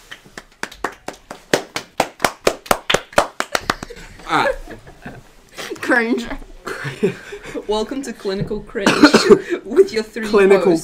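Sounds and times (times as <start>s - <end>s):
man clapping in the distance: 0.0s - 4.0s
speech: 4.3s - 4.6s, 5.9s - 10.8s.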